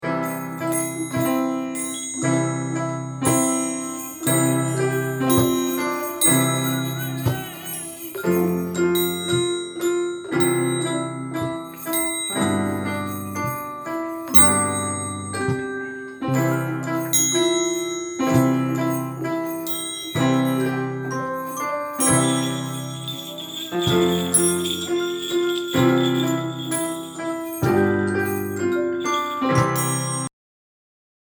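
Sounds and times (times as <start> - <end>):
Christmas song: 0.0 - 30.3.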